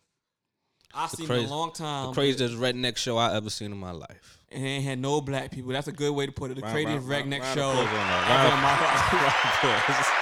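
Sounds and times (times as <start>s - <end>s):
speech: 1.0s - 10.2s
round of applause: 7.4s - 10.2s
loud excited voices laughing and whooping: 7.5s - 10.2s.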